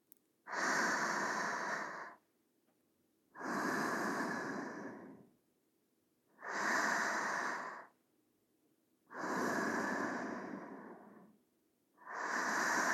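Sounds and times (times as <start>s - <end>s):
sleeping breathing: 0.5s - 2.2s, 3.4s - 5.3s, 6.4s - 8.0s, 9.1s - 11.4s, 12.0s - 12.9s.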